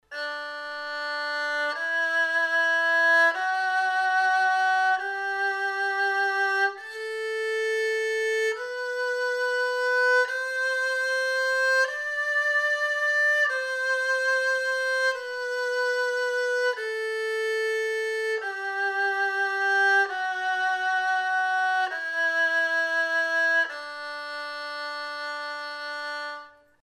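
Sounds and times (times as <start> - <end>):
erhu: 0.0 - 26.8.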